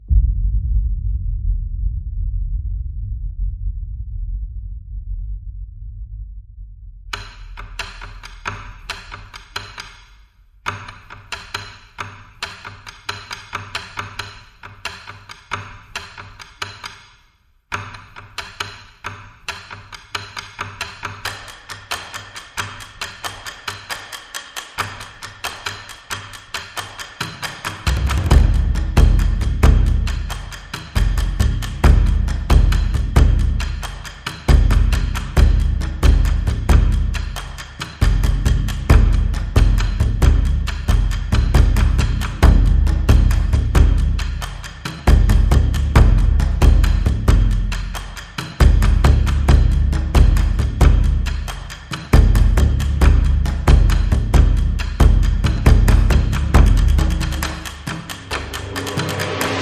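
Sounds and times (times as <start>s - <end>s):
trailer percussion: 0.0s - 14.4s, 20.3s - 59.6s.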